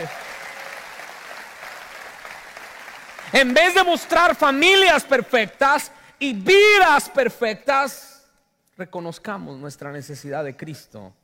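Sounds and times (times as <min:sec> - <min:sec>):
applause: 0:00.0 - 0:04.9
speech: 0:03.3 - 0:08.1, 0:08.8 - 0:11.2.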